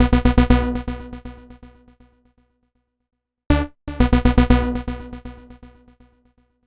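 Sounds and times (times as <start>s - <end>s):
progressive trance synth music: 3.5s - 5.7s.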